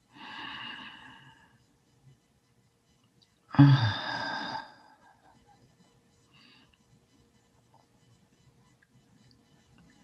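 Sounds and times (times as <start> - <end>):
deep breath during a guided breathing exercise: 0.1 - 1.6, 3.6 - 5.1
speech: 3.6 - 4.0.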